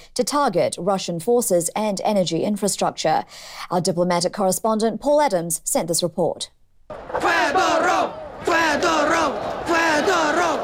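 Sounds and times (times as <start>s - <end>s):
speech: 0.2s - 10.6s
crowd chanting in a city square: 6.9s - 10.6s.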